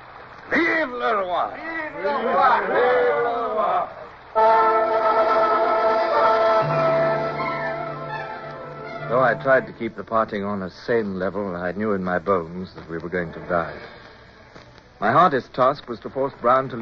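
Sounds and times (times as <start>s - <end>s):
crowd cheering: 0.6s - 10.0s
speech: 0.8s - 5.3s, 9.1s - 14.0s, 15.0s - 16.8s.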